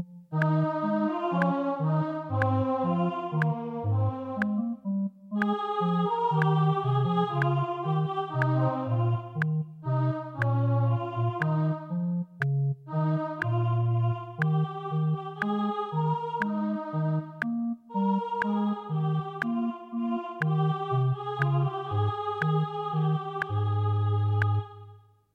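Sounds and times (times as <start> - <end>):
choral anthem: 0.2 - 25.2.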